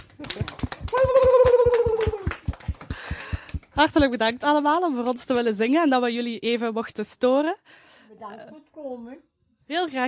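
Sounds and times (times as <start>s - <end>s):
group clapping: 0.0s - 5.2s
speech: 0.2s - 0.6s, 3.8s - 10.0s
person cheering: 0.3s - 2.5s.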